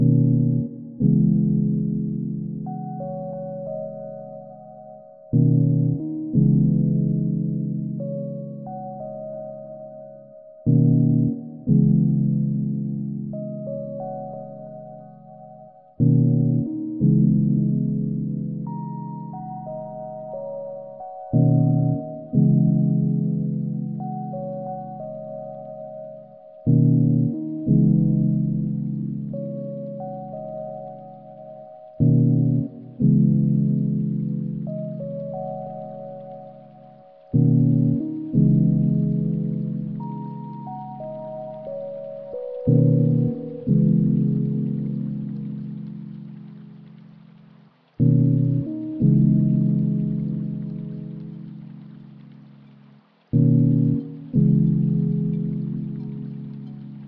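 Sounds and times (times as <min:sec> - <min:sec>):
underwater ambience: 0:00.0 - 0:57.0.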